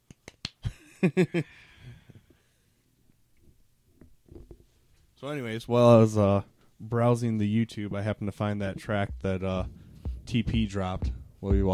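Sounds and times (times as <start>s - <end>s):
soft golf clap: 0.0s - 0.7s
speech: 1.0s - 1.7s, 5.2s - 11.7s.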